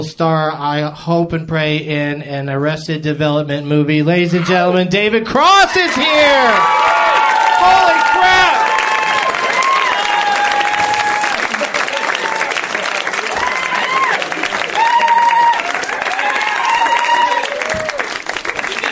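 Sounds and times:
speech: 0.0 - 6.9, 7.6 - 8.5
crowd cheering and whooping: 5.6 - 18.9
audience applause: 5.8 - 18.9.

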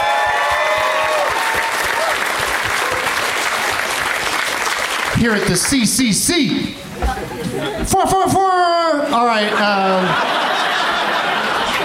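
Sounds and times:
audience clapping for the wait staff at a venue: 0.0 - 6.0, 10.9 - 11.8
speech: 5.2 - 10.4
laughter: 7.0 - 8.2, 9.0 - 11.8.

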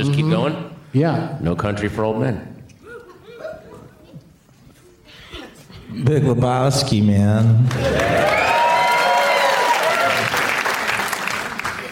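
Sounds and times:
speech: 0.3 - 2.5, 5.9 - 8.4
laughter: 2.8 - 4.5, 11.3 - 11.8
voices cheering: 7.7 - 11.0
audience applause: 7.7 - 11.8.

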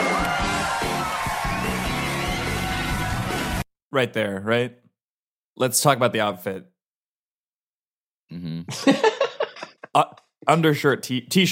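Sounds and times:
audience cheering and whooping to welcome two guests: 0.0 - 3.6
speech: 3.9 - 4.8, 5.6 - 6.7, 8.3 - 9.2, 10.0 - 11.5
laughter: 8.7 - 10.1.

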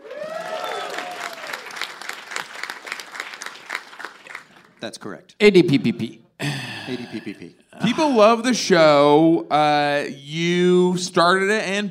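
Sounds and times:
whoops or whistles: 0.0 - 1.6
audience applause: 0.0 - 4.8
speech: 4.8 - 11.8.

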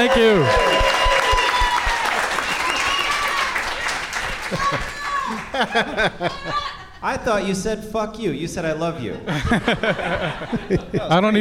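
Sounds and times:
speech: 0.0 - 0.7, 5.6 - 11.3
talk show audience clapping and cheering for a first-time guest: 0.0 - 6.6
laughter: 4.2 - 7.5, 9.0 - 11.3.

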